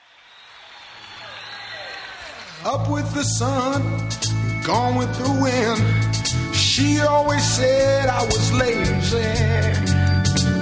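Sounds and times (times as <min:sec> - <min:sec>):
people clapping: 0:00.0 - 0:03.3
speech: 0:02.6 - 0:09.8.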